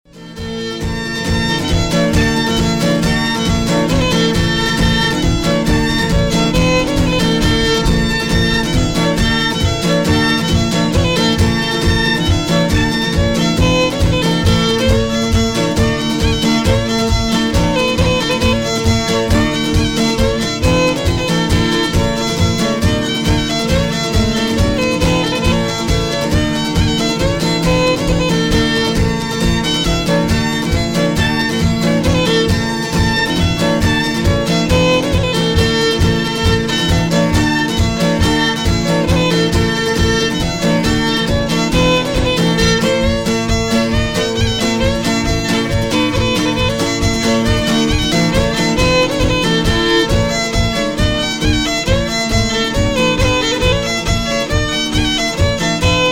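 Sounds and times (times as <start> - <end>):
fiddle playing polka: 0.0 - 56.1.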